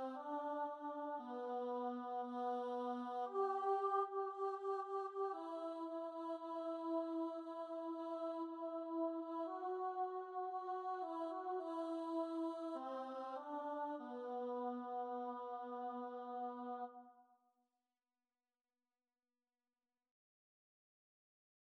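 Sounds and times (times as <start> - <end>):
alto voice singing a mass: 0.0 - 17.0.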